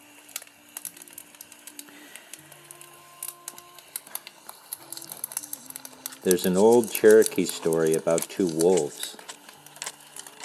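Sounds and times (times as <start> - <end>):
knife whittling wood: 3.2 - 10.4
speech: 6.2 - 9.2.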